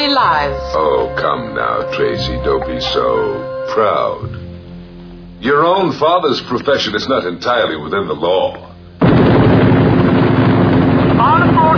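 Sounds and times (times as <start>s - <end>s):
speech: 0.2s - 4.4s, 5.4s - 9.5s
aircraft flying over Mars with loud steady engine roar: 9.0s - 11.7s.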